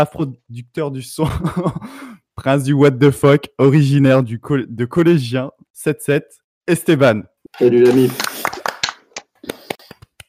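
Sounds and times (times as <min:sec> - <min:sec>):
speech: 0:00.0 - 0:08.3
laughter: 0:01.2 - 0:01.8
hand clapping: 0:07.8 - 0:10.2.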